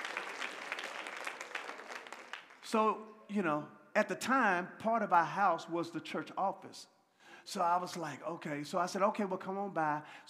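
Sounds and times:
church congregation applauding: 0.0 - 2.8
speech: 2.7 - 10.2.

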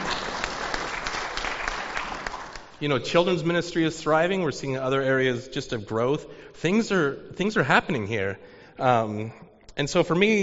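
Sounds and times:
audience clapping in a church gathering: 0.0 - 2.8
speech: 2.8 - 10.4.

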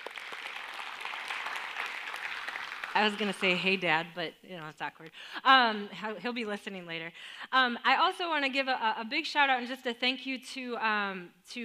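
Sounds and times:
audience clapping at a church gathering: 0.0 - 3.8
speech: 3.0 - 11.6.

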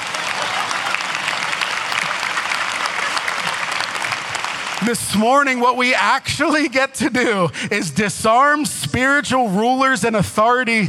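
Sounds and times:
laughter: 0.0 - 5.3, 6.2 - 8.2
audience applauding with hand claps: 0.0 - 5.6
speech: 4.8 - 10.8.

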